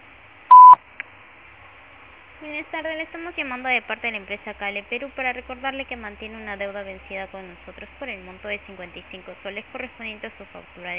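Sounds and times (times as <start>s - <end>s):
Claro voicemail beep tone: 0.5s - 0.8s
speech: 2.4s - 10.9s.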